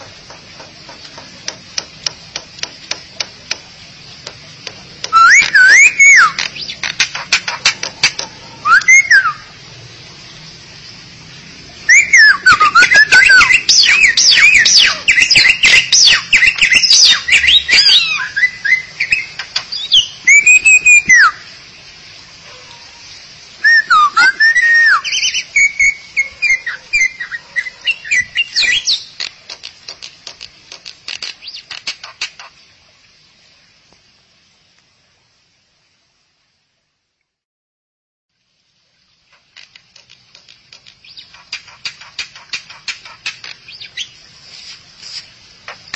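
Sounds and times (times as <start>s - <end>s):
starling or myna song: 5.0s - 6.8s, 8.6s - 9.5s, 11.9s - 21.5s, 23.6s - 29.2s.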